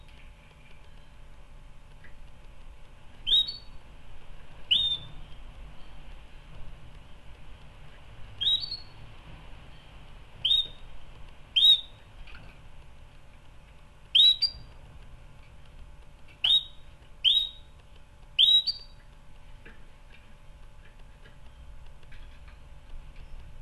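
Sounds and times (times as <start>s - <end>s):
soft ticking: 0.0s - 23.6s
canary giving short rising whistles: 3.2s - 3.8s, 4.7s - 5.4s, 8.4s - 9.0s, 10.4s - 10.8s, 11.6s - 12.0s, 14.1s - 14.7s, 16.4s - 17.7s, 18.4s - 19.0s.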